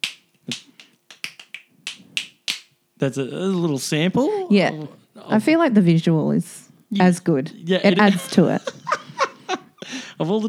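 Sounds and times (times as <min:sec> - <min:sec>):
finger clicking: 0:00.0 - 0:02.7
speech: 0:03.0 - 0:08.9, 0:10.2 - 0:10.4
laughter: 0:07.6 - 0:10.4.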